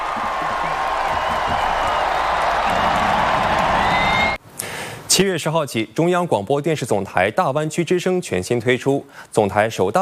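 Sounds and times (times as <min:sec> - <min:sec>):
huge stadium crowd roaring and cheering: 0:00.0 - 0:04.4
whoops: 0:00.0 - 0:04.4
speech: 0:05.2 - 0:10.0.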